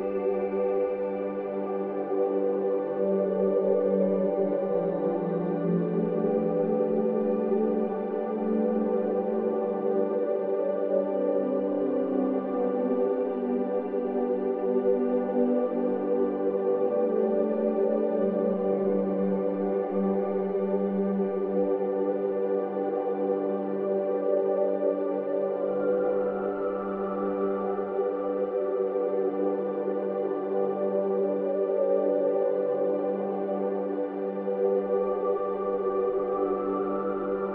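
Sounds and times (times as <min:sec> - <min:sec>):
light warm atmospheric ambient soundscape blend: 0:00.0 - 0:37.5.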